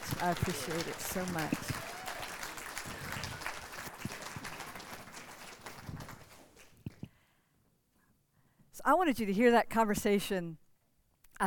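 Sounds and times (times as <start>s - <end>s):
audience applause: 0.0s - 7.0s
speech: 0.2s - 1.8s, 8.9s - 10.6s.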